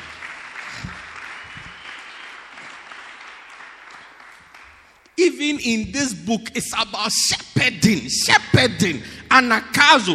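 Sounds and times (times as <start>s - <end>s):
audience clapping: 0.0s - 5.2s
speech: 5.3s - 10.1s.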